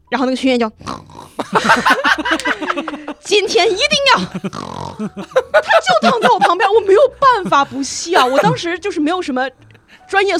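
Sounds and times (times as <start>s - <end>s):
speech: 0.1s - 10.3s
person imitating rhythmic snoring: 0.8s - 1.5s, 4.4s - 5.2s
laughter: 1.3s - 8.7s.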